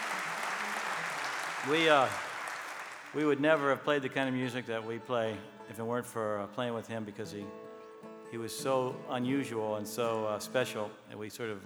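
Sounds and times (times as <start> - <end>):
live audience applauding for the band's late guitarist: 0.0 - 3.8
speech: 1.6 - 2.3, 3.1 - 7.6, 8.3 - 11.6.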